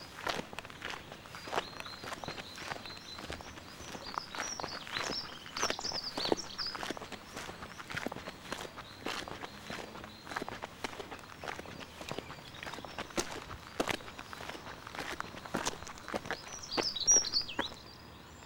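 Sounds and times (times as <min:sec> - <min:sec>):
walking on gravel at Saltwells Nature Reserve: 0:00.0 - 0:17.8.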